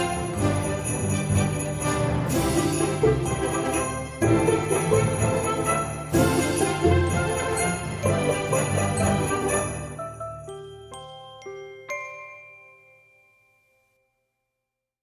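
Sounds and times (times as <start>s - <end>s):
Christmas talkover music bed without choir: 0.0s - 14.2s.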